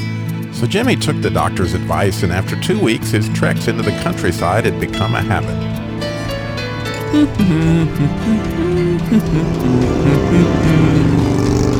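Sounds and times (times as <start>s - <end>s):
speech: 0.6s - 5.8s, 7.1s - 11.2s
biker's motorcycle engine approaching on a road: 5.0s - 11.7s.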